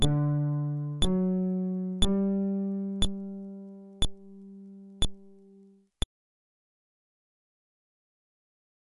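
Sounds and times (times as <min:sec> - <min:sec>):
fretless instrument: 0:00.0 - 0:05.8.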